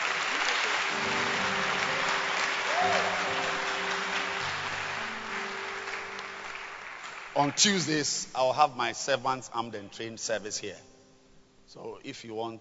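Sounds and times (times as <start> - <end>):
audience applause: 0.0 - 8.0
speech: 7.4 - 10.9, 11.7 - 12.5.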